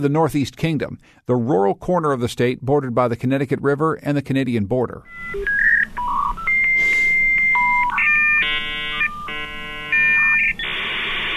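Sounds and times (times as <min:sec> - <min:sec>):
speech: 0:00.0 - 0:05.7
dial-up modem connection tones: 0:05.1 - 0:11.3.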